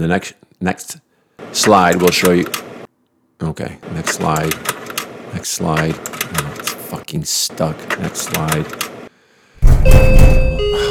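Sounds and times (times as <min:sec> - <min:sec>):
speech: 0:00.0 - 0:02.7, 0:03.4 - 0:09.0, 0:09.8 - 0:10.7
heavy pounding on a door: 0:09.6 - 0:10.6
electronic doorbell tone: 0:09.8 - 0:10.8.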